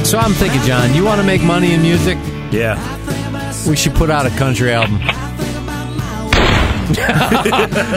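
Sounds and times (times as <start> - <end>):
speech: 0.1 - 3.1, 3.6 - 5.3, 6.9 - 7.9
gunshot: 6.3 - 7.1
laughter: 6.7 - 7.9.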